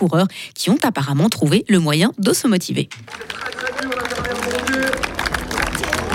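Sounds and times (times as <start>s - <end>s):
speech: 0.0s - 3.7s
crowd voices and shouts: 2.9s - 6.1s
spectators applauding at a race finish line: 2.9s - 6.1s.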